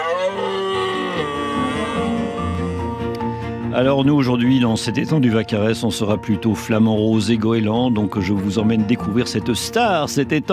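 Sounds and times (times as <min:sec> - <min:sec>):
red deer stag bellowing during rut: 0:00.0 - 0:03.3
speech: 0:03.8 - 0:10.5.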